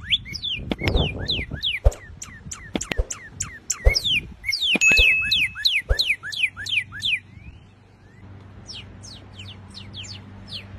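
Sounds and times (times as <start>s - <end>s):
northern cardinal song of repeated falling whistles: 0.0s - 8.2s.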